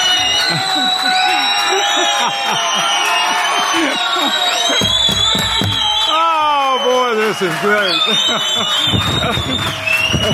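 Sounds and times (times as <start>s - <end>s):
crowd shouting and cheering at feast: 0.0s - 10.3s
laughter: 0.1s - 5.6s, 6.2s - 10.3s
speech: 2.2s - 3.1s, 3.7s - 4.9s, 7.4s - 10.3s.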